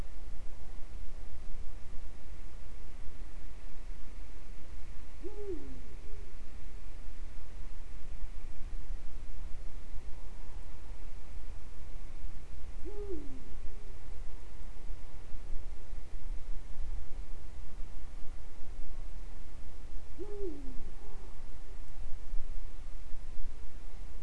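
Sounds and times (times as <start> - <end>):
low-frequency hum: 0.0 - 24.2
Eurasian eagle-owl hooting: 5.2 - 5.8, 12.8 - 13.6, 20.2 - 20.8.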